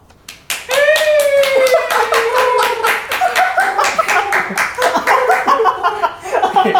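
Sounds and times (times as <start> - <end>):
live studio audience clapping: 0.2 - 5.8
audience laughter: 1.3 - 6.7.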